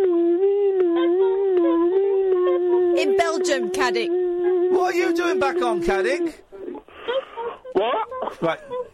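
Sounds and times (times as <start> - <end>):
voice imitating an ambulance siren: 0.0 - 6.8
speech: 3.4 - 6.5, 7.8 - 8.8.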